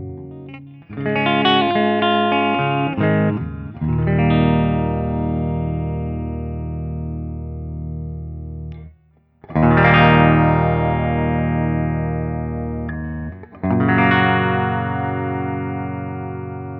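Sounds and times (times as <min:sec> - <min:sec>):
six-string doubleneck guitar playing open chords: 0:00.0 - 0:16.7.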